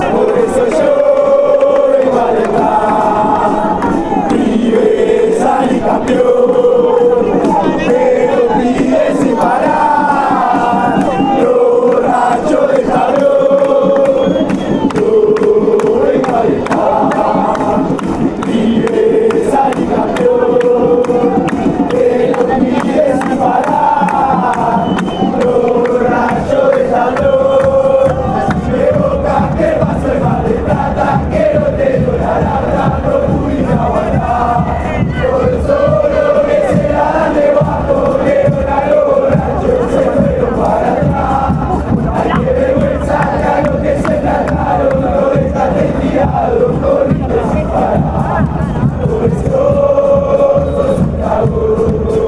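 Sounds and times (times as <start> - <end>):
fans chanting: 0.0 - 52.2.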